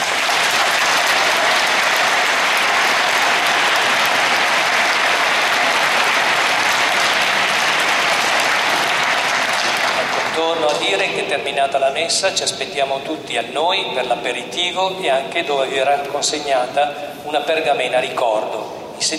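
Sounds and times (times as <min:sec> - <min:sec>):
audience applause: 0:00.0 - 0:11.3
speech: 0:10.7 - 0:19.1.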